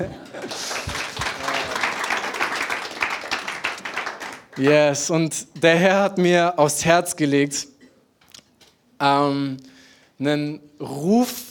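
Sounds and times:
speech: 0.0s - 0.2s, 4.6s - 7.7s, 9.0s - 11.4s
audience applause: 0.0s - 4.8s.

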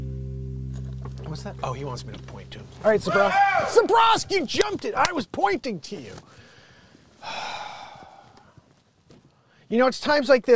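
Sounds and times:
speech: 1.3s - 6.4s, 9.7s - 10.5s
wheezing breath: 6.3s - 8.7s.

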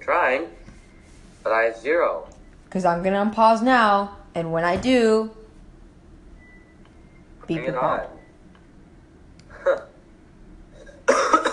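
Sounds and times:
speech: 0.3s - 0.6s, 1.4s - 5.4s, 7.5s - 8.2s, 9.6s - 9.8s
person coughing: 9.5s - 10.0s, 10.8s - 11.5s.

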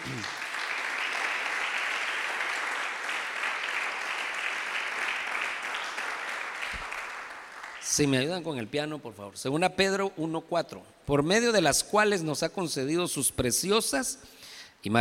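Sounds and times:
audience applause: 0.0s - 8.0s
speech: 7.9s - 14.9s.

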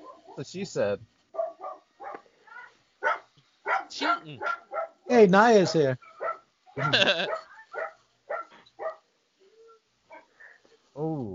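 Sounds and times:
dog barking in another room: 0.0s - 0.4s, 1.3s - 5.1s, 6.0s - 9.1s, 10.1s - 10.3s
speech: 0.4s - 1.1s, 4.2s - 6.1s, 6.8s - 7.4s.

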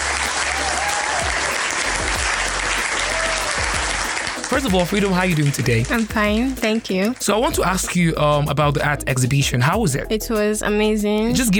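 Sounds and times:
faint cheers: 0.0s - 5.8s
studio audience round of applause: 0.0s - 7.9s
speech: 4.5s - 11.5s.

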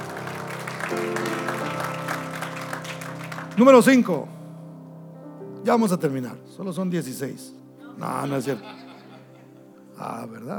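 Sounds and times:
audience applauding: 0.0s - 4.3s
speech: 3.6s - 4.4s, 5.6s - 8.8s, 10.0s - 10.5s
laughter: 8.0s - 9.8s.

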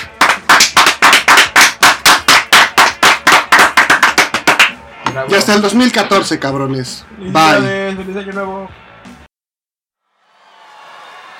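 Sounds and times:
Japanese-style applause: 0.0s - 4.8s, 10.3s - 11.3s
speech: 5.2s - 9.2s.

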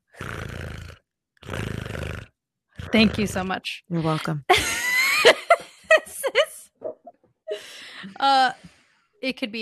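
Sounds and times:
person imitating a cat purring: 0.1s - 3.5s
speech: 2.9s - 5.4s, 8.2s - 8.6s, 9.2s - 9.6s.

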